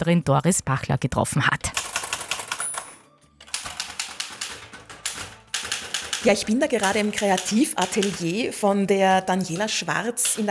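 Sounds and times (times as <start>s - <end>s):
speech: 0.0s - 1.8s, 6.2s - 10.4s
manual typewriter keys clacking: 1.6s - 10.4s
typewriter bell ring: 1.7s - 7.2s.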